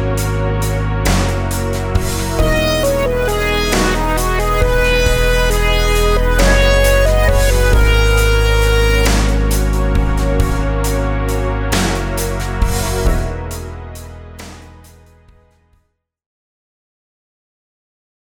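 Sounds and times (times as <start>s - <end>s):
compound meter rhythms in eighths with sixteenths: 1.1s - 13.4s.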